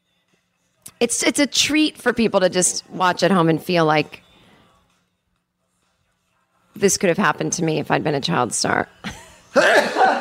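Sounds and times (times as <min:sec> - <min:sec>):
speech: 0:01.0 - 0:04.2, 0:06.8 - 0:10.0
person sneezing: 0:09.6 - 0:10.1.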